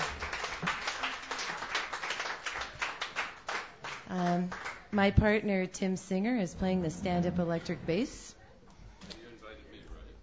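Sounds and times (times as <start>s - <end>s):
open mic night audience applause: 0.0s - 4.9s
speech: 4.1s - 8.3s.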